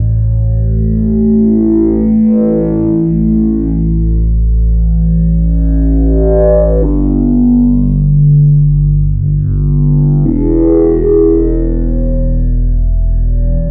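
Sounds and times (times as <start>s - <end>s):
synth bass: 0.0s - 13.6s.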